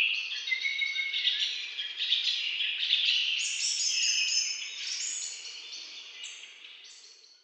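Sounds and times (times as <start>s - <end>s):
bird chorus: 0.0s - 7.4s.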